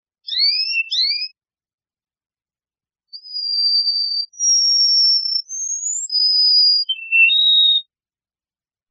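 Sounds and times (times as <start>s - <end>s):
Atlantic canary Serinus canaria song: 0.2s - 1.4s, 3.1s - 8.0s.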